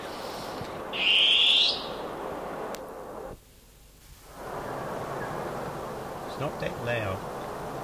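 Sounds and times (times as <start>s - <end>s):
long-tailed cuckoo call: 0.0s - 2.1s, 4.6s - 6.0s
speech: 6.4s - 7.3s.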